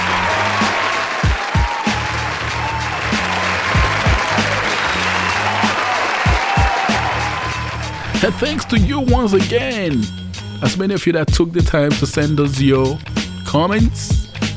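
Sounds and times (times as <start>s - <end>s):
audience applause: 0.0s - 8.8s
speech: 8.2s - 14.2s.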